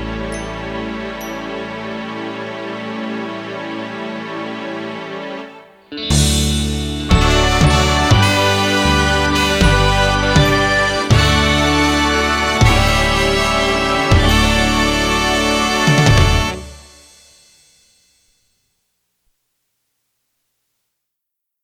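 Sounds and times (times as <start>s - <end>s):
backing track: 0.0s - 17.2s.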